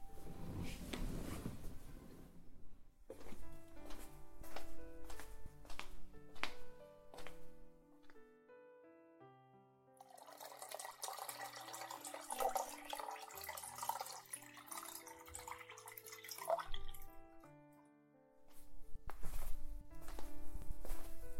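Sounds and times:
soft footsteps: 0:00.0 - 0:08.2, 0:18.5 - 0:21.3
warm water pouring into a glass: 0:10.0 - 0:17.1
gentle tinkling music: 0:10.0 - 0:17.8.

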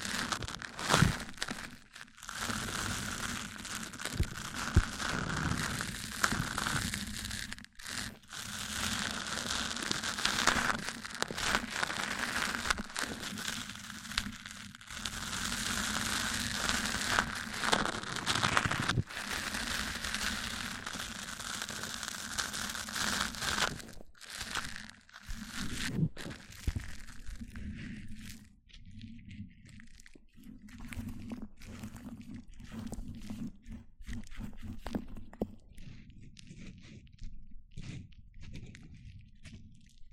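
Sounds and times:
mic-on-mic scratching and crinkling rubs: 0:00.0 - 0:40.1
soft taps and scrapes: 0:25.9 - 0:40.1.

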